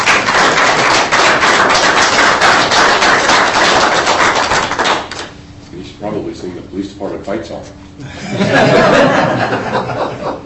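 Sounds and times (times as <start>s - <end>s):
crowd round of applause: 0.0s - 5.3s
speech: 6.4s - 10.0s
laughter: 8.0s - 10.4s.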